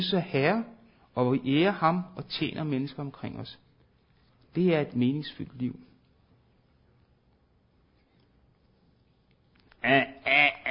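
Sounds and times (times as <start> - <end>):
speech: 0.0 - 3.6, 4.5 - 5.9, 9.8 - 10.6
alarm clock sounding with a duck's quack: 9.8 - 10.6.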